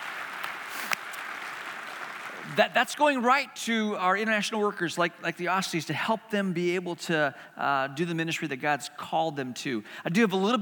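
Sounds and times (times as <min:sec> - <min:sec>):
audience applause: 0:00.0 - 0:02.6
speech: 0:02.6 - 0:10.5.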